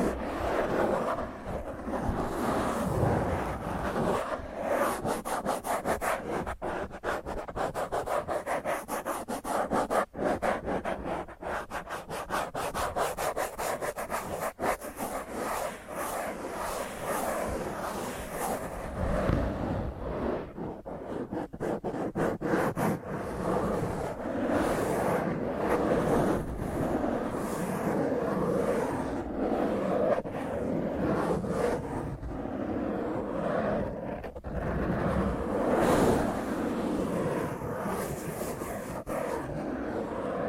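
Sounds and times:
fingernails scratching across a microphone: 0.0 - 40.4.

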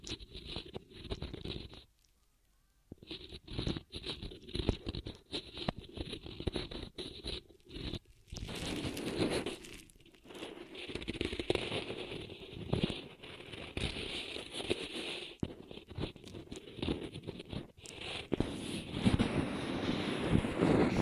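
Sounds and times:
ear massage rubbing and scratching: 0.0 - 2.2, 2.9 - 21.0.

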